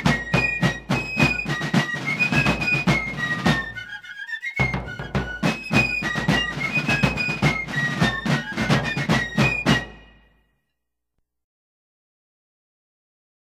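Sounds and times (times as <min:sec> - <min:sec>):
drum and fife music: 0:00.0 - 0:10.4.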